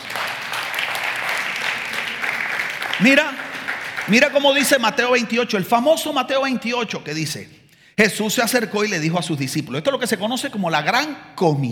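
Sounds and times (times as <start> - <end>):
crowd clapping: 0.0 - 4.8
speech: 3.0 - 3.4, 4.1 - 11.7.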